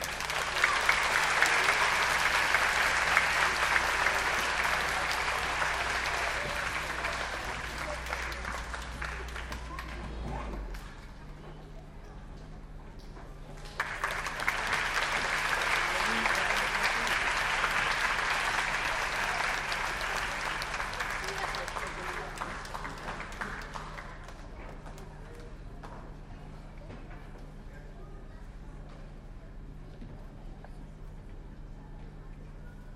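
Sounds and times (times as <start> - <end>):
audience applauding musicians: 0.0 - 10.9, 13.6 - 25.2.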